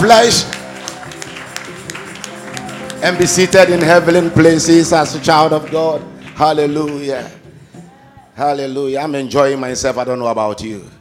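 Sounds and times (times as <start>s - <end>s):
audience clapping: 0.0s - 7.5s
speech: 0.1s - 0.6s, 3.0s - 7.4s, 8.4s - 10.9s.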